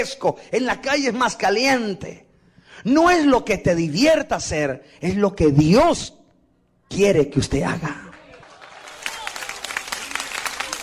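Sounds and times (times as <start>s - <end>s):
speech: 0.0s - 2.2s, 2.8s - 6.2s, 6.9s - 8.1s
audience applauding: 7.9s - 10.8s.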